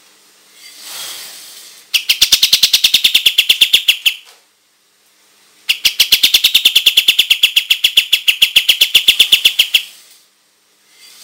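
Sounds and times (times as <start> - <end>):
white-shouldered triller calling: 1.9 - 4.3, 5.7 - 10.0.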